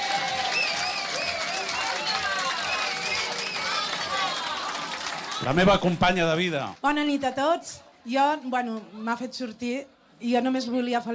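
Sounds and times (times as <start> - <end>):
scattered cheers: 0.0 - 6.0
sustained applause from a sizeable crowd: 0.0 - 6.8
speech: 5.4 - 11.1.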